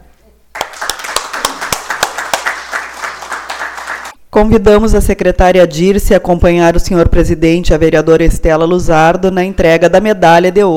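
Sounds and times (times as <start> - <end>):
audience standing ovation at an honorary ceremony in Uruguaiana: 0.6 - 4.2
speech: 4.4 - 10.7.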